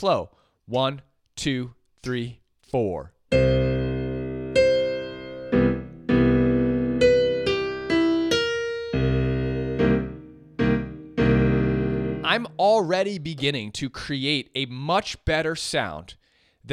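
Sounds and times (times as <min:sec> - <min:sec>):
speech: 0:00.0 - 0:03.6, 0:12.4 - 0:16.7
piano chords in root position beginning with C major struck in slow comping rhythm: 0:03.3 - 0:13.2.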